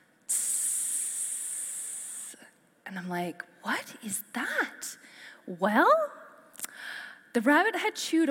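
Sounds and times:
water spraying from a punctured sink supply tube: 0:00.3 - 0:02.4
speech: 0:02.9 - 0:06.2, 0:07.4 - 0:08.2.

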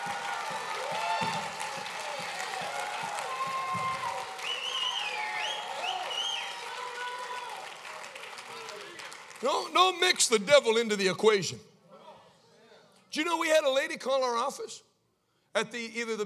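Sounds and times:
audience clapping hands: 0:00.0 - 0:10.4
speech: 0:09.4 - 0:11.7, 0:13.2 - 0:14.9, 0:15.6 - 0:16.2.

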